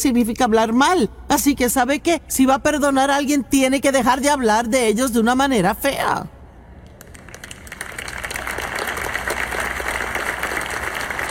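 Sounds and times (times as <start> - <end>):
speech: 0.0 - 6.4
audience applause: 7.0 - 11.3.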